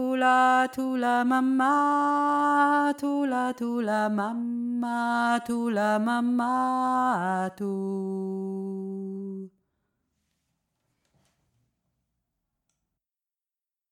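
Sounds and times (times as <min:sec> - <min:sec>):
deep voice singing: 0:00.0 - 0:09.5.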